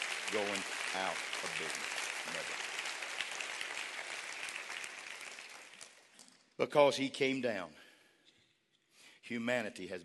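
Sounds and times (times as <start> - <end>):
audience clapping hands: 0.0 - 6.2
speech: 0.3 - 2.8, 6.6 - 7.8, 9.3 - 10.0.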